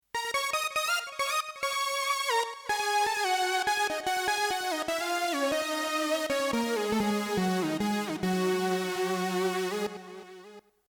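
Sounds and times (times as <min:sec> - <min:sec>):
synth lead: 0:00.2 - 0:10.2.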